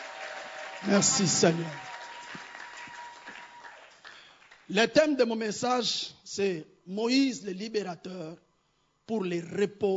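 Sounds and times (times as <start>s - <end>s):
audience cheering: 0.0s - 4.1s
audience applauding: 0.0s - 4.7s
speech: 0.8s - 1.9s, 4.7s - 8.4s, 9.1s - 9.9s.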